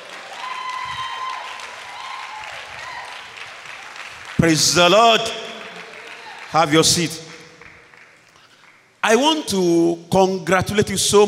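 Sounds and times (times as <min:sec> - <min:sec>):
church congregation applauding: 0:00.0 - 0:09.0
speech: 0:04.4 - 0:05.4, 0:06.5 - 0:07.2, 0:09.0 - 0:11.2.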